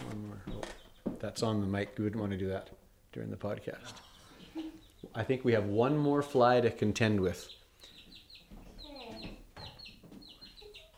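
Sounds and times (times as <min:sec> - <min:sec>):
speech: 0:01.2 - 0:04.1, 0:05.2 - 0:07.6
pet chick Polka Dot peeping: 0:04.0 - 0:05.4, 0:07.0 - 0:10.9.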